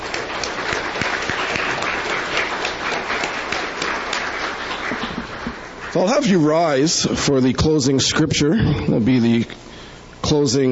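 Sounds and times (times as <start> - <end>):
crowd applause: 0.0 - 6.7
speech: 6.0 - 9.7, 10.3 - 10.7.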